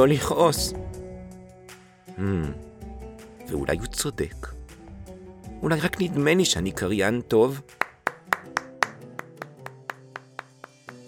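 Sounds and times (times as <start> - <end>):
speech: 0.0 - 0.9, 2.2 - 2.7, 3.5 - 4.6, 5.6 - 7.8
people clapping for a performer: 7.7 - 11.0.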